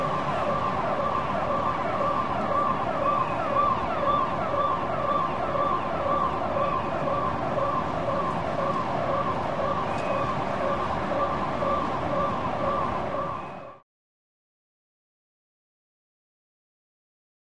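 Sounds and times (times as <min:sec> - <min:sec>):
distant alarm: 0:00.0 - 0:13.8.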